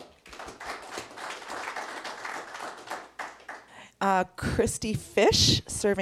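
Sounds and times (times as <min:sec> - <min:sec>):
audience clapping: 0:00.0 - 0:03.8
speech: 0:04.0 - 0:06.0.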